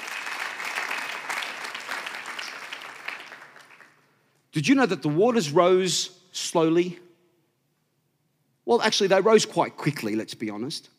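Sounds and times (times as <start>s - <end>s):
crowd clapping: 0.0s - 4.2s
speech: 4.6s - 7.0s, 8.7s - 10.9s.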